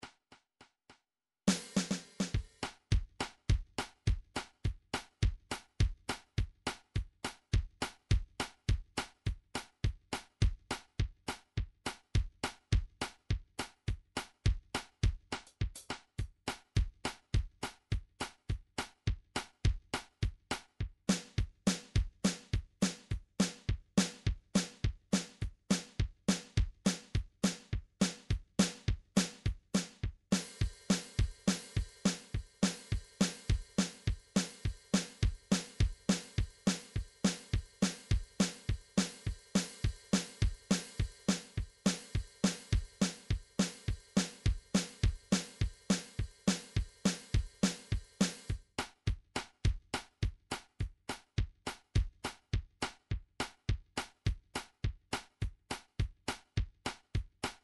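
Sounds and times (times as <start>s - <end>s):
MIDI township jive drum groove: 1.5s - 57.6s.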